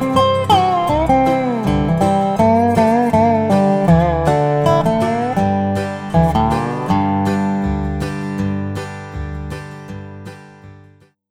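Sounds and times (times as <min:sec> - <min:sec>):
backing track: 0:00.0 - 0:10.7
dobro playing in the key of G: 0:00.0 - 0:10.7.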